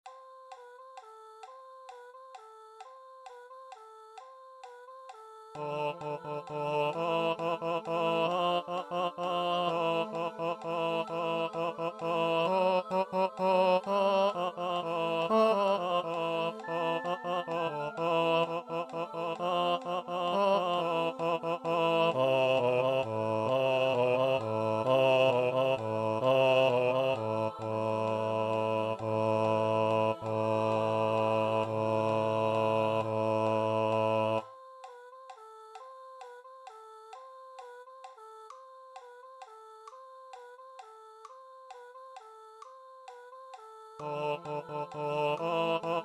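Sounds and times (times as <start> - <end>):
tenor singing: 5.5 - 35.0, 43.8 - 46.0.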